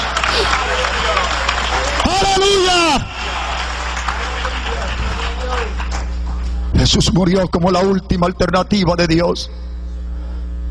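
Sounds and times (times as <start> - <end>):
audience applause: 0.0 - 6.6
speech: 6.8 - 9.7.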